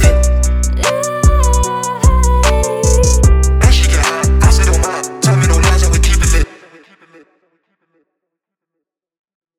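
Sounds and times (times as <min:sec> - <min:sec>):
rap music: 0:00.0 - 0:07.3.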